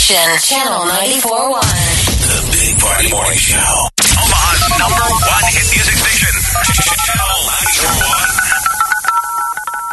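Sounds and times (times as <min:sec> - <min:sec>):
speech: 0:00.1 - 0:03.9, 0:04.8 - 0:08.1
electronic game-show sounder jingle: 0:04.0 - 0:09.9.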